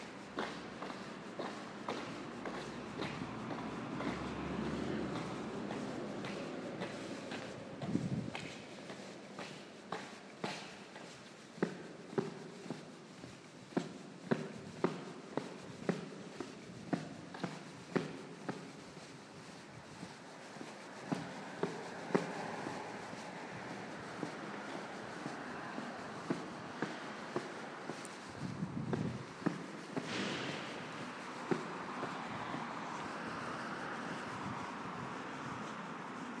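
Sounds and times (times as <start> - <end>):
long echoing tunnel ambience: 0.0 - 36.3.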